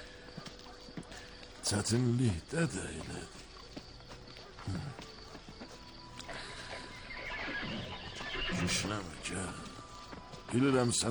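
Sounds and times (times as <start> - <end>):
speech: 1.7 - 3.4, 4.7 - 5.0, 8.7 - 9.7, 10.5 - 11.0
horse neighing: 6.2 - 9.3.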